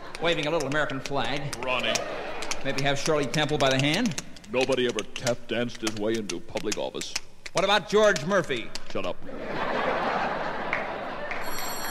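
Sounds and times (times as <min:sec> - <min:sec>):
laughter: 0:00.0 - 0:03.8, 0:09.2 - 0:11.8
steady hiss: 0:00.0 - 0:11.4
speech: 0:00.2 - 0:09.6
Flak phone telephone ringing: 0:11.4 - 0:11.8.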